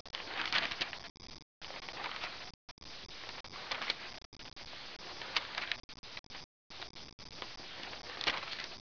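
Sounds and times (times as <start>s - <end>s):
page turn: 0.1s - 1.1s, 1.7s - 2.4s, 3.5s - 4.1s, 5.0s - 5.8s, 7.4s - 8.8s.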